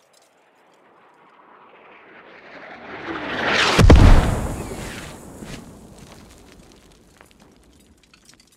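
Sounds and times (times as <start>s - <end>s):
mortar impact at 50m: 3.8s - 7.8s.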